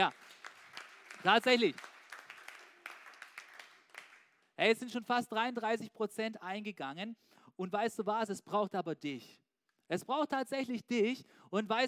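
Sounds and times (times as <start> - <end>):
speech: 0.0 - 0.2, 1.2 - 1.9, 4.6 - 11.8
applause: 0.0 - 4.8.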